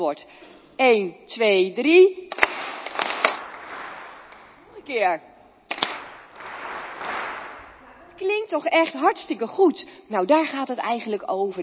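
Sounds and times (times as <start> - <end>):
speech: 0.0 - 2.2, 4.9 - 5.3, 8.2 - 11.6
audience clapping along: 2.3 - 4.8, 5.7 - 8.2.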